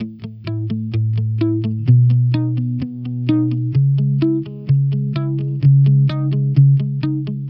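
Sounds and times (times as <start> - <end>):
electric pop guitar in C-sharp minor: 0.0 - 7.4.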